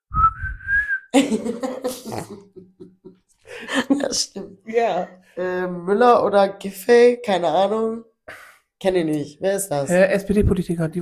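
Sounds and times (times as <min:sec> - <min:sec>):
person whistling a pop song melody: 0:00.1 - 0:01.2
laughter or coughing bursts: 0:01.1 - 0:03.1
speech: 0:01.2 - 0:02.6, 0:04.1 - 0:10.9.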